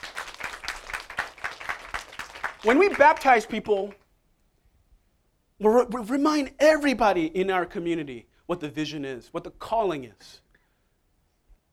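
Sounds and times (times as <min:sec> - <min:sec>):
audience clapping hands: 0:00.0 - 0:04.0
speech: 0:02.6 - 0:04.0, 0:05.6 - 0:10.4.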